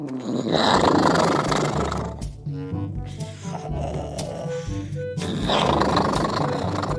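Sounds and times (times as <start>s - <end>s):
very loud dinosaur snoring: 0.0s - 2.3s, 3.4s - 6.9s.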